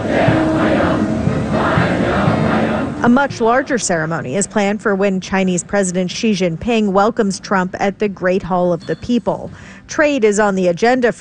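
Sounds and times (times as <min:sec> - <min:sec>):
large crowd chanting a welcome in unison: 0:00.0 - 0:04.1
speech: 0:03.0 - 0:11.1.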